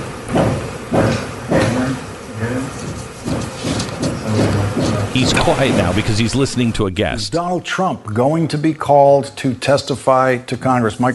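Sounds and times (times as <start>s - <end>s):
hammering in the other room: 0.3s - 1.8s, 2.8s - 6.6s
speech: 5.2s - 11.1s.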